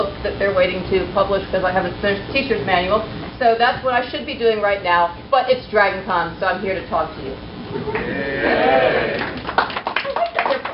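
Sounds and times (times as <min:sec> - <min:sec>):
speech: 0:00.0 - 0:09.4
audience applause and clapping: 0:08.0 - 0:10.7.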